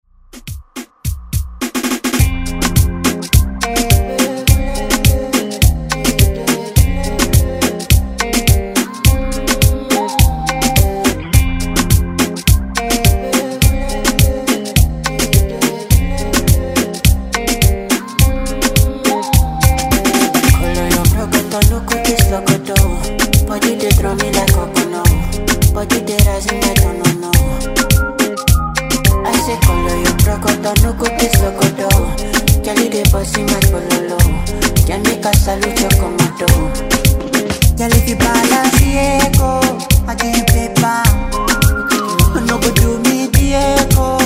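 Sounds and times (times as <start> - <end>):
Afro moombahton beat: 0.2 - 44.2.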